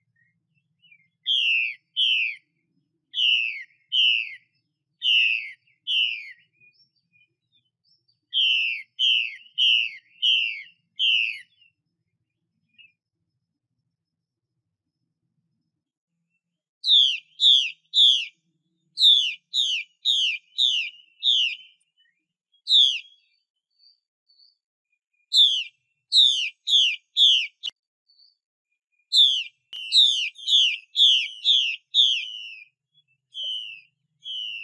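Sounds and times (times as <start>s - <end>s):
Chinese hwamei whistling song: 0.9s - 2.4s, 3.1s - 4.4s, 5.0s - 6.4s, 8.3s - 11.6s, 16.8s - 18.4s, 19.0s - 21.8s, 22.7s - 23.4s, 25.3s - 27.7s, 29.1s - 34.6s.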